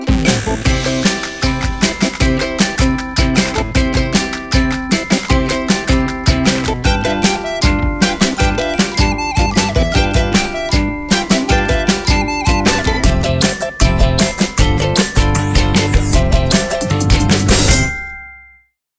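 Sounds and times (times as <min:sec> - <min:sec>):
Nokia Lumia ringtone: 0:00.2 - 0:18.7.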